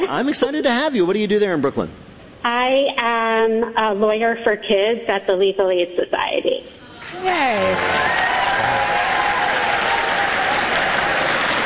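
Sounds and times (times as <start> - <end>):
speech: 0.0 - 8.0
live audience applauding: 7.0 - 11.6
whoops: 7.6 - 11.6.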